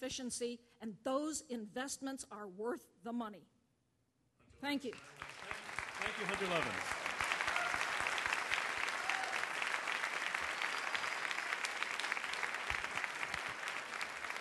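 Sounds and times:
speech: 0.0 - 3.6, 4.6 - 5.4, 6.2 - 7.0
audience applause: 5.0 - 14.4.

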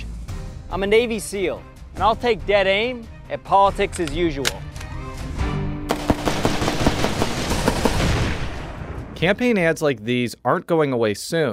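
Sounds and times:
speech: 0.7 - 4.7, 9.2 - 11.5
gunshot in a field: 5.9 - 9.2
explosion in a field with crackling, popping bursts: 5.9 - 9.5.

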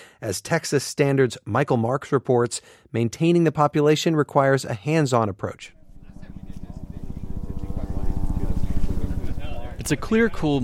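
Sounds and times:
speech: 0.2 - 5.8, 9.8 - 10.6
helicopter flying around the south side of Elephant Mountain: 5.6 - 10.6.

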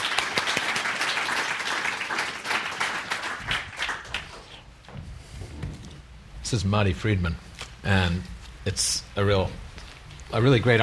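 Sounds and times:
audience at a book conversation applauding to welcome two guests: 0.0 - 4.7
speech: 6.5 - 9.6, 10.3 - 10.8.

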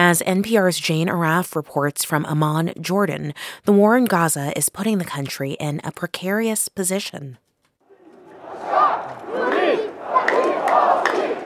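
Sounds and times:
speech: 0.1 - 7.5
protest crowd chanting: 7.9 - 11.4.

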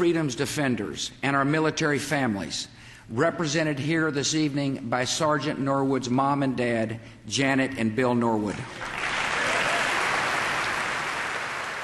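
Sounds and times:
speech: 0.0 - 9.0
crowd applauding and cheering: 8.7 - 11.8.

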